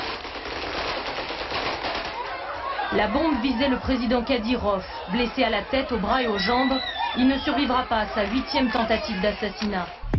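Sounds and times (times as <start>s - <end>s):
gunfire into a crowd: 0.0s - 2.6s
laughter: 1.8s - 10.0s
speech: 2.9s - 10.1s.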